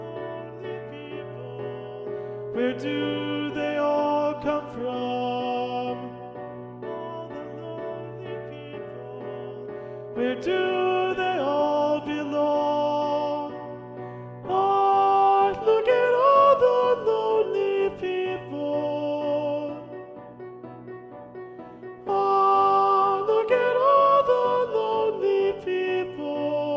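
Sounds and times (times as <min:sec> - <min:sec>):
alto section of SATB choir singing: 0:00.0 - 0:26.7.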